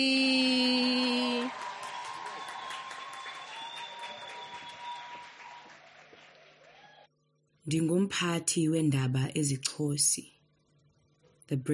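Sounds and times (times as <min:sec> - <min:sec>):
audience applause for first performer: 0:00.7 - 0:07.1
speech: 0:07.7 - 0:10.4, 0:11.5 - 0:11.7.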